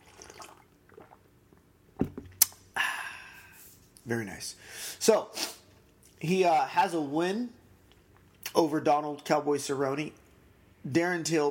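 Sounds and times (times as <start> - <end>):
sipping coffee: 0.0 - 2.7
speech: 4.1 - 5.5, 6.2 - 7.6, 8.6 - 10.2, 10.8 - 11.4.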